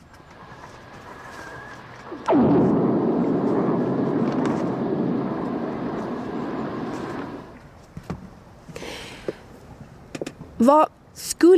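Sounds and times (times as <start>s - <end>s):
underwater lightning strike recorded by hydrophone: 0.0s - 7.6s
speech: 2.3s - 2.6s, 10.6s - 11.5s.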